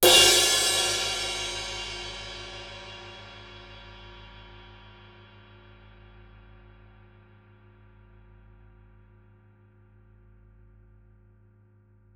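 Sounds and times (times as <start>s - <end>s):
cymbal: 0.0s - 7.2s.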